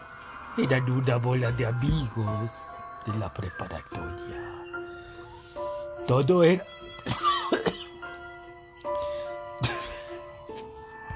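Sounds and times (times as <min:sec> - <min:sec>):
speech: 0:00.6 - 0:04.6, 0:06.1 - 0:07.7
cough: 0:07.0 - 0:08.0, 0:09.6 - 0:10.1.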